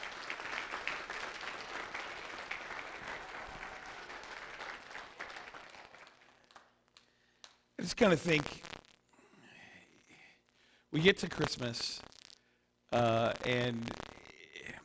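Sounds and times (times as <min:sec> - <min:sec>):
audience applause for the kids: 0:00.0 - 0:06.8
speech: 0:07.8 - 0:08.7, 0:11.0 - 0:12.1, 0:12.9 - 0:14.1.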